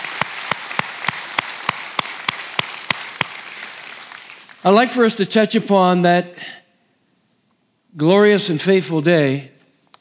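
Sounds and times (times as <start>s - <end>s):
audience applause: 0.0s - 4.7s
speech: 4.6s - 6.6s, 8.0s - 9.5s.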